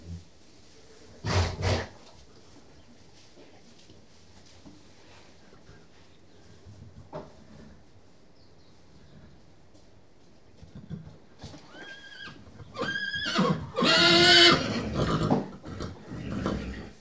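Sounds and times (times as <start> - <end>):
horse whinnying: 11.5 - 16.9.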